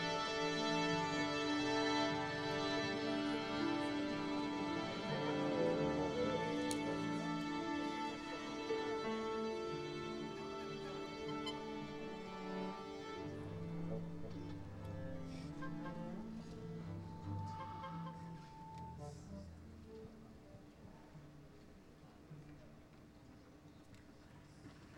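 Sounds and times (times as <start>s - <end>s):
orchestra tuning instruments at the Parque do Ibirapuera: 0.0s - 19.6s.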